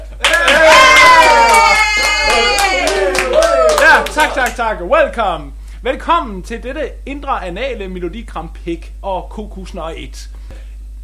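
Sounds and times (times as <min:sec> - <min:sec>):
hand claps: 0:00.0 - 0:04.6
speech: 0:04.4 - 0:10.6.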